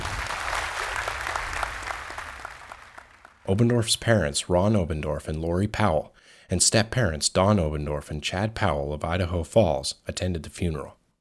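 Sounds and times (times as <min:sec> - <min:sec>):
applause: 0:00.0 - 0:03.8
speech: 0:03.5 - 0:11.0.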